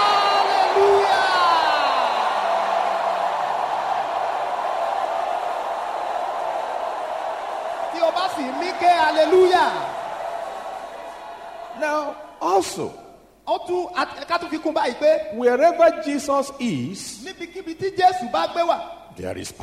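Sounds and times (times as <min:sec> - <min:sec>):
audience shouting hallelujah: 0:00.0 - 0:12.5
speech: 0:08.8 - 0:09.9, 0:11.8 - 0:19.6.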